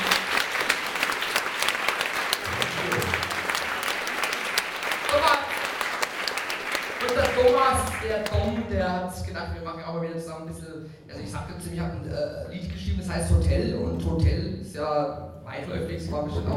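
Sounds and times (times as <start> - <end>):
loud audience applause: 0.0 - 8.7
speech: 8.1 - 16.5.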